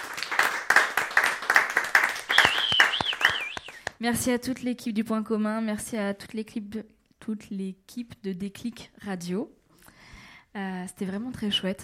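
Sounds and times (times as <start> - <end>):
audience applause: 0.0 - 3.9
speech: 4.0 - 9.6, 10.6 - 11.8.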